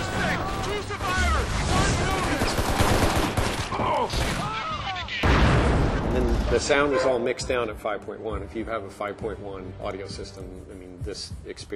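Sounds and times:
people shouting: 0.0s - 2.9s, 3.6s - 5.1s
repeated gunshots echoing off the hills outdoors: 0.0s - 6.1s
speech: 6.5s - 11.7s.

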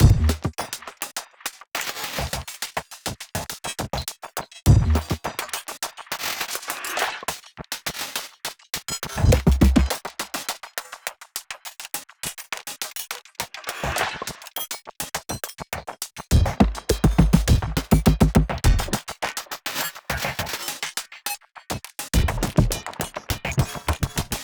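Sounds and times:
drum music: 0.0s - 0.5s, 4.7s - 5.2s, 9.2s - 10.0s, 16.3s - 19.0s, 22.2s - 24.4s.

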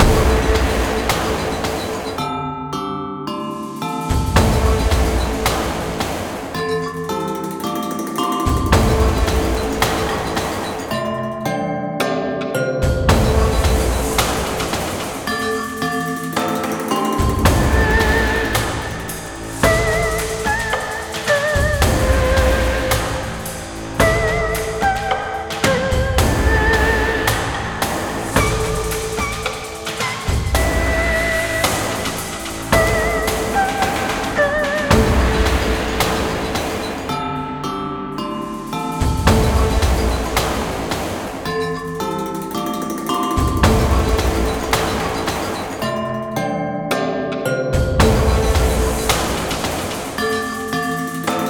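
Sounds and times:
music loop: 0.0s - 51.4s.

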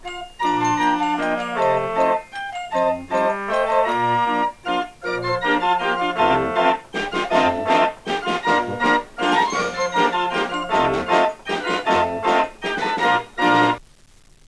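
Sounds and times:
fairground organ style music: 0.0s - 13.8s.

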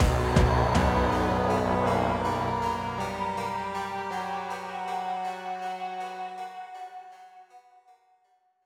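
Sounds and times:
battle end music: 0.0s - 5.6s.

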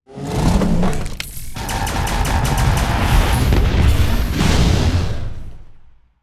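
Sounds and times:
piercing shot: 1.5s - 5.2s.

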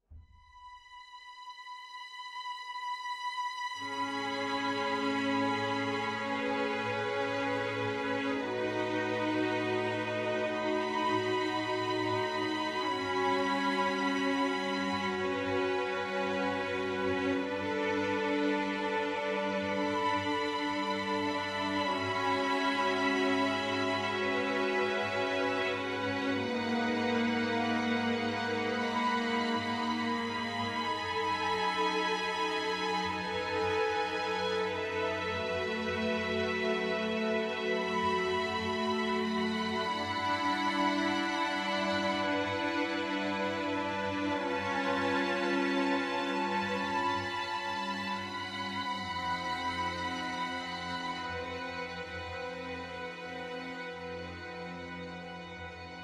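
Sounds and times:
strings: 0.0s - 56.0s.

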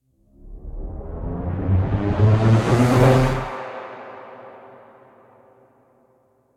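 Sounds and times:
riser sweep: 0.3s - 4.3s.

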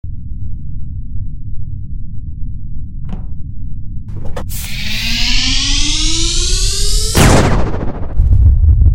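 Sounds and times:
big laser: 4.1s - 8.8s.

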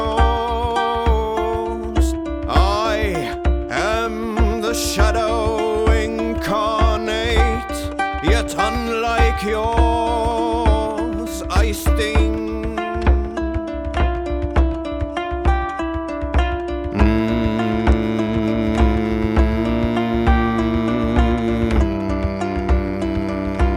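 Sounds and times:
vocals: 0.0s - 15.9s, 16.8s - 23.7s
drum: 0.0s - 23.7s.

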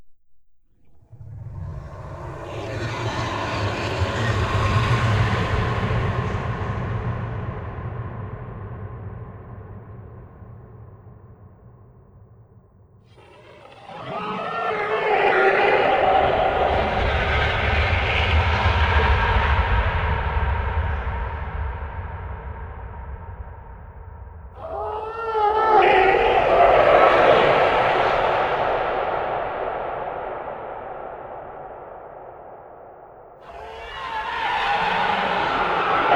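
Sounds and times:
dungeon monster: 1.0s - 7.5s, 13.1s - 21.3s, 24.6s - 32.6s, 33.4s - 36.1s.

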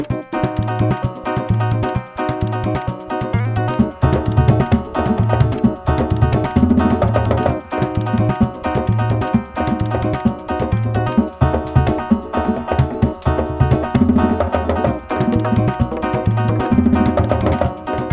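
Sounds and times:
cave music at 130 bpm: 0.1s - 18.1s.

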